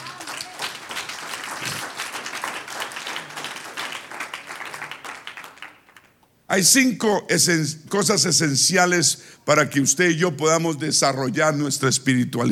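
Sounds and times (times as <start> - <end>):
crowd applause: 0.0 - 6.2
speech: 6.5 - 12.5.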